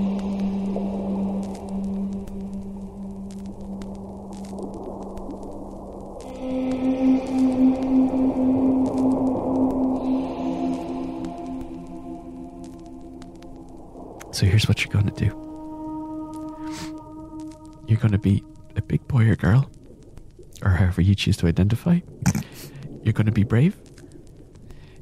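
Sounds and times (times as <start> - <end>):
whale song: 0.0 - 19.0
speech: 14.4 - 15.4, 17.9 - 19.8, 20.6 - 22.4, 23.0 - 23.9.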